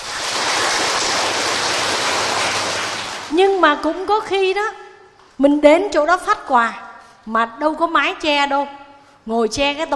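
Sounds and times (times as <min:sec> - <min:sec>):
applause: 0:00.0 - 0:03.3
speech: 0:03.6 - 0:04.8, 0:05.4 - 0:09.9.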